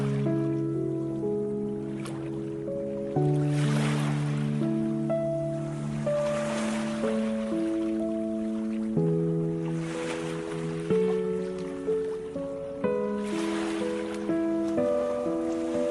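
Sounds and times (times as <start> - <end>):
ocean waves: 0.0 - 15.8
relaxing meditation music: 0.0 - 15.8.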